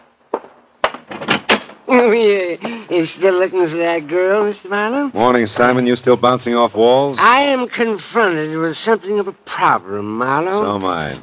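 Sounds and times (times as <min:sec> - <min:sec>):
newspaper thumping against an apartment door at dawn: 0:00.8 - 0:01.8
speech: 0:02.0 - 0:11.2.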